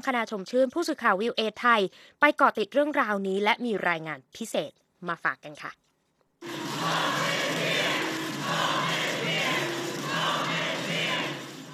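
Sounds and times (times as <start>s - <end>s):
speech: 0.0s - 7.2s
large crowd of young people shouting a chant in unison: 6.4s - 11.7s.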